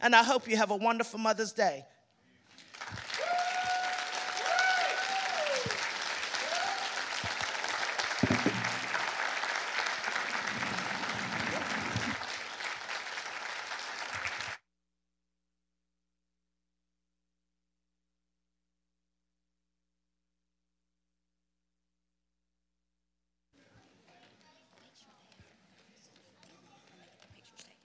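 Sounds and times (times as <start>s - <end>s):
speech: 0.0s - 2.0s
standing ovation applause: 2.4s - 14.6s.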